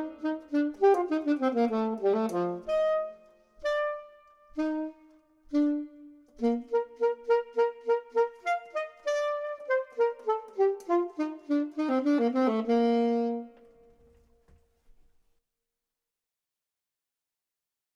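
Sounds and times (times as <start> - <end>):
clarinet: 0.0 - 14.3
saxophone: 0.0 - 14.3.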